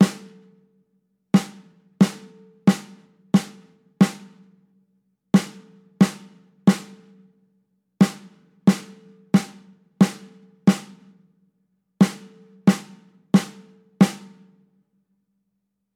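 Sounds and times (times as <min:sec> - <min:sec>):
snare drum: 0:00.0 - 0:00.4, 0:01.4 - 0:04.4, 0:05.4 - 0:07.0, 0:08.0 - 0:11.1, 0:12.0 - 0:14.5.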